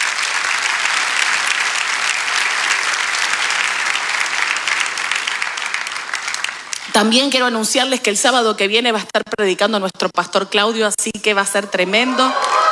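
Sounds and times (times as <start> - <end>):
audience applause: 0.0 - 7.1, 11.9 - 12.7
speech: 7.0 - 12.5.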